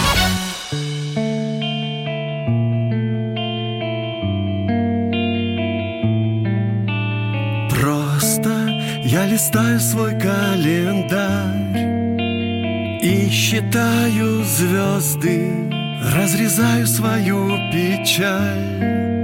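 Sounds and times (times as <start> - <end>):
band kicking in with a crash: 0.0 - 1.8
instrumental song intro with effects-laden chords: 0.0 - 19.2
speech: 9.3 - 11.9, 13.0 - 19.1.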